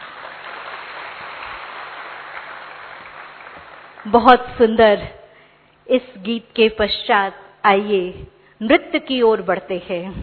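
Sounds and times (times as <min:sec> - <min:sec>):
audience applause: 0:00.0 - 0:04.1
speech: 0:04.0 - 0:05.2, 0:05.9 - 0:10.2.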